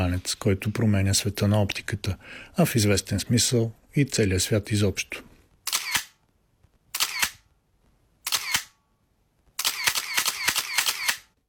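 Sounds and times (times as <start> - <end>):
speech: 0.0 - 5.3
paparazzi camera shutter clicks: 5.7 - 6.2, 6.9 - 7.4, 8.2 - 8.8, 9.6 - 11.4.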